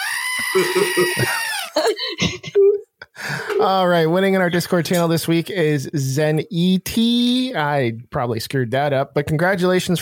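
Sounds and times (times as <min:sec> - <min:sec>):
goat scream sound effect: 0:00.0 - 0:01.8
speech: 0:00.4 - 0:02.6, 0:03.2 - 0:10.0.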